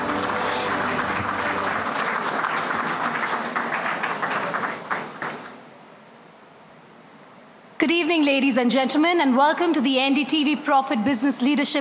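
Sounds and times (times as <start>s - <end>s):
audience applause: 0.0s - 5.6s
speech: 7.8s - 11.7s.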